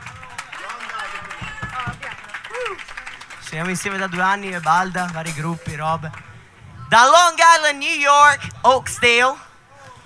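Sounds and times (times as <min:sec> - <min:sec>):
audience applause: 0:00.0 - 0:05.3
speech: 0:03.5 - 0:06.3, 0:06.9 - 0:09.4.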